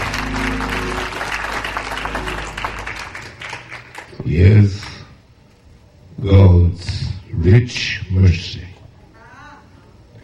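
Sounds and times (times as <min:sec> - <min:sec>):
audience hand clapping: 0:00.0 - 0:04.2
speech: 0:04.3 - 0:04.8, 0:07.5 - 0:08.4.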